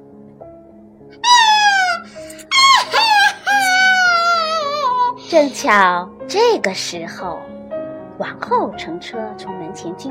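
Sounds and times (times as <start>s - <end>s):
child wailing and crying loudly: 1.2s - 5.2s
speech: 5.3s - 7.6s, 8.2s - 10.0s.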